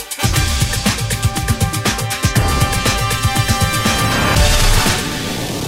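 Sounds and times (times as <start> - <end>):
jingle: 0.2 - 5.6.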